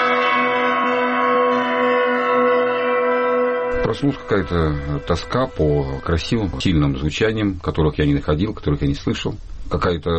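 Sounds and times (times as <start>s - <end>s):
church bells ringing: 0.0s - 6.6s
speech: 3.8s - 10.1s.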